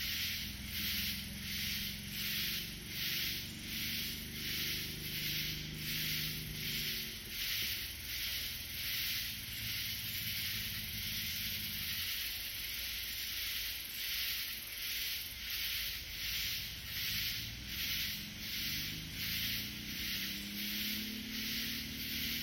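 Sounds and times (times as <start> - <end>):
katydid calling in raspy bursts: 0.0 - 22.4.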